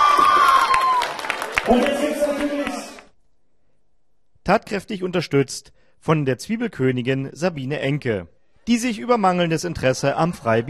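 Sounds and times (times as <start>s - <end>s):
applause: 0.0s - 3.1s
speech: 4.5s - 10.6s.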